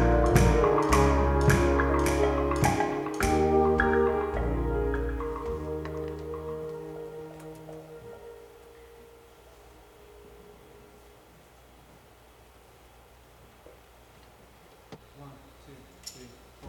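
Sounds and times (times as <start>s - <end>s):
instrumental music: 0.0s - 11.4s.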